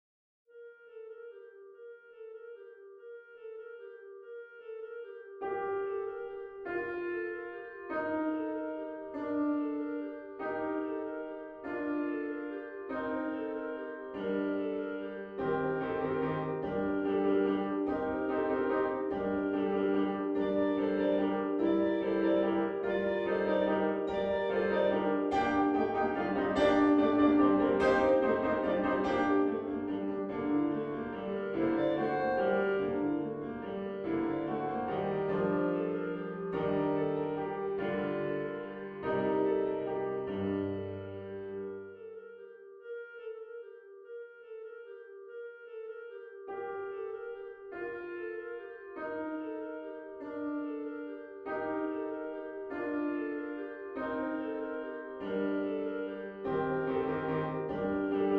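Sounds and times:
carol melody: 0.8s - 58.3s.

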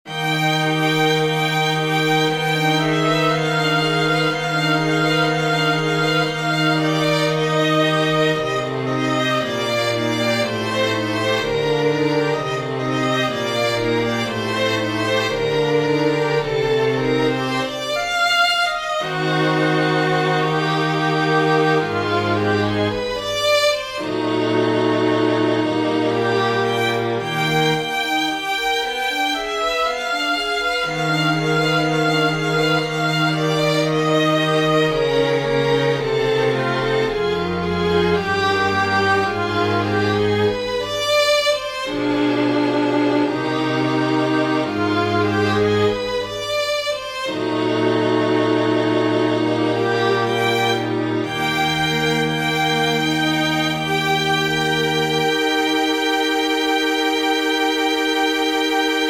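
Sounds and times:
string quartet: 0.0s - 59.0s.

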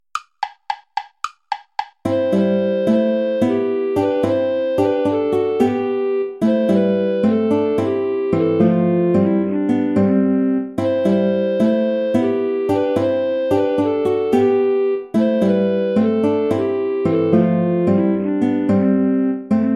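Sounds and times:
play-along backing track without guitar: 0.0s - 19.7s.

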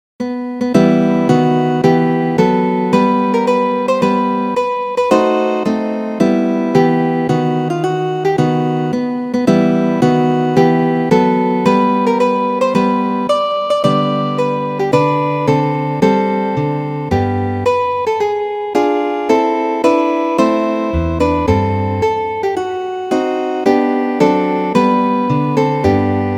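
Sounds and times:
affectionate andante piece: 0.6s - 26.3s.

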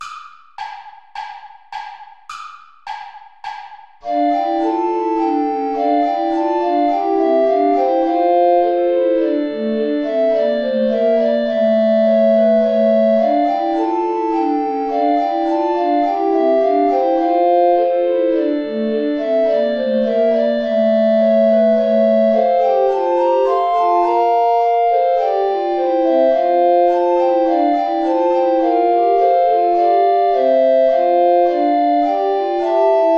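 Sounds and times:
play-along backing music: 0.0s - 33.1s.

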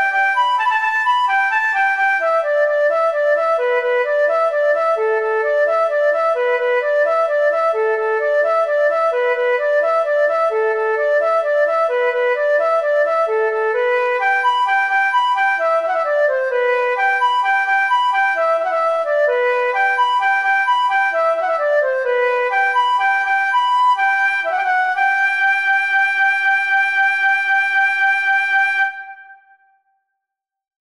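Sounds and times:
march for flute oboe and harp: 0.0s - 29.4s.

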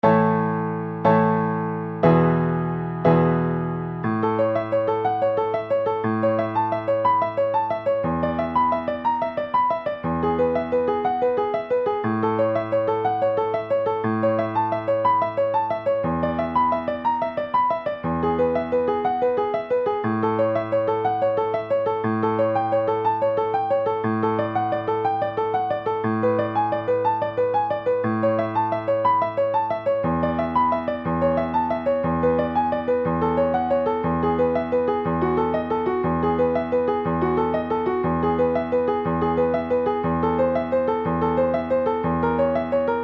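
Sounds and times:
piano prelude: 0.0s - 43.0s.

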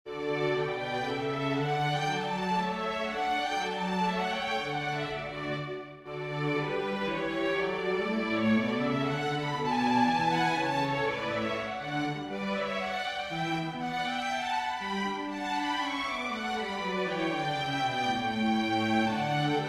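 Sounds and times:
strings: 0.1s - 19.6s
wind instruments: 0.1s - 19.6s.

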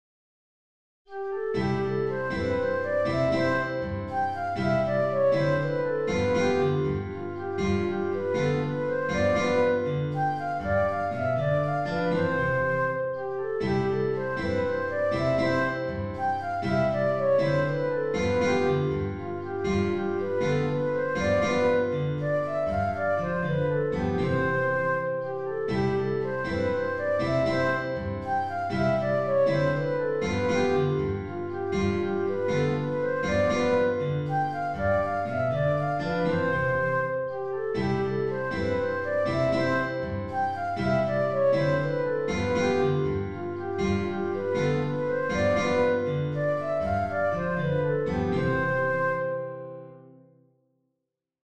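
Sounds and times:
song: 1.1s - 49.8s.

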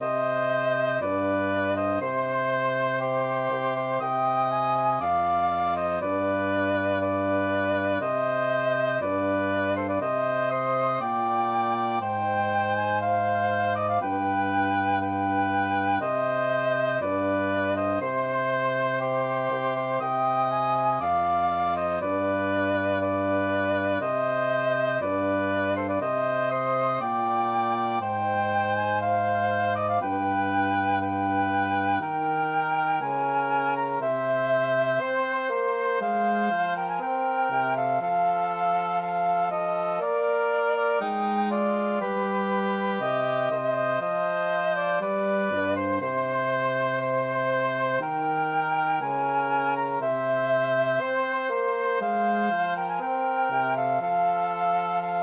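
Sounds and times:
woodwind trio: 0.0s - 55.2s.

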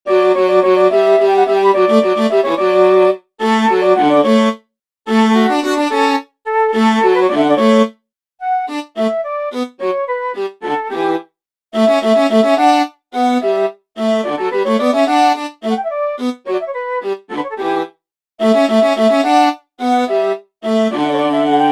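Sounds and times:
flute: 0.1s - 4.5s, 6.5s - 11.2s, 14.2s - 18.6s, 20.1s - 21.6s
viola: 0.1s - 11.2s, 11.8s - 21.6s.

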